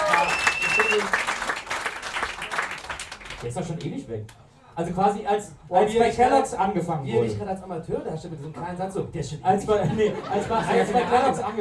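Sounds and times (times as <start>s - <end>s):
short applause: 0.0s - 3.5s
speech: 3.4s - 11.6s
laughter: 9.8s - 11.6s.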